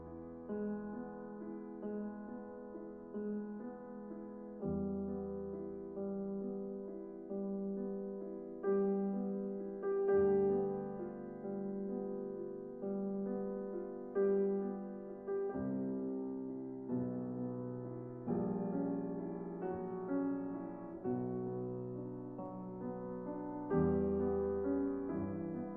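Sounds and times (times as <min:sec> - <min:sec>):
piano sonata: 0:00.0 - 0:25.7.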